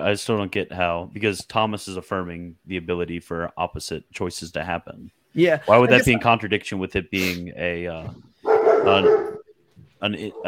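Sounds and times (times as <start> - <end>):
speech: 0.0 - 9.3, 10.0 - 10.4
dog barking: 8.4 - 9.5, 10.3 - 10.4.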